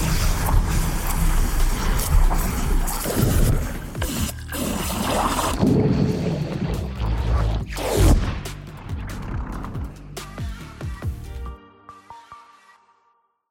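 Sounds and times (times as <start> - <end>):
surge: 0.0 - 9.8.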